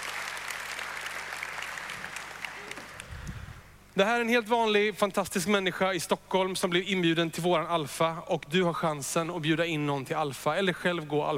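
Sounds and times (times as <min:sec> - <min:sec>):
audience applause: 0:00.0 - 0:03.4
speech: 0:04.0 - 0:11.3.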